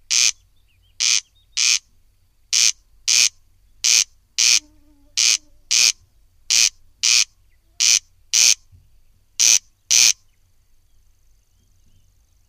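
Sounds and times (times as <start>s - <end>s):
corncrake rasping double-note calls: 0.0s - 1.9s, 2.5s - 8.7s, 9.4s - 10.3s.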